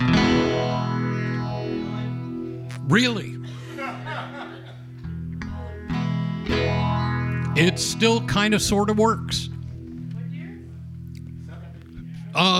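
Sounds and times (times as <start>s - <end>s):
electric guitar through vintage phase shifter pedal: 0.0s - 12.5s
speech: 2.9s - 3.5s, 7.6s - 9.5s, 12.4s - 12.5s
person chuckling: 3.4s - 4.9s, 11.4s - 12.0s.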